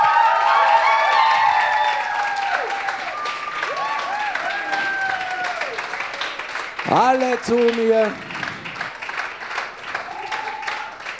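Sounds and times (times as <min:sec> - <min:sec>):
cheering voices and whoops: 0:00.0 - 0:06.2, 0:10.1 - 0:11.1
audience applause: 0:00.0 - 0:11.1
speech: 0:06.9 - 0:08.3.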